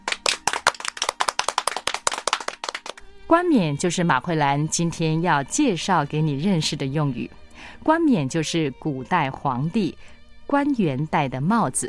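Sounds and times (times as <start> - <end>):
hands clapping: 0.0 - 3.0
speech: 3.3 - 11.8.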